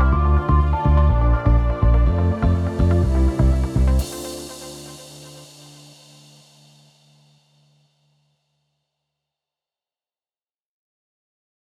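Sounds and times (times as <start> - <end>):
summer chill house music: 0.0 - 7.0.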